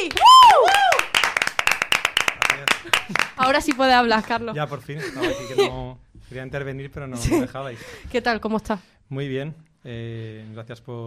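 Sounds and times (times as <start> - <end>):
audience applause: 0.0 - 3.8
speech: 3.1 - 11.0.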